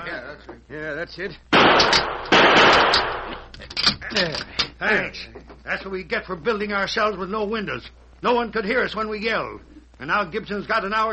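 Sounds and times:
speech: 0.1 - 11.1
gunshot shooting off a lock: 1.6 - 3.5.

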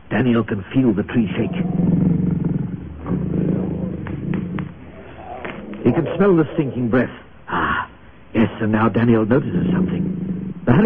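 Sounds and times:
speech: 0.1 - 2.0, 5.9 - 7.3, 8.5 - 9.9, 10.6 - 10.8
lion roaring: 1.0 - 7.9, 9.4 - 10.8.

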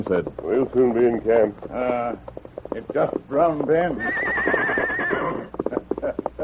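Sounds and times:
speech: 0.0 - 4.6
horse hooves clip-clopping: 0.0 - 6.4
horse whinnying: 3.8 - 6.0.

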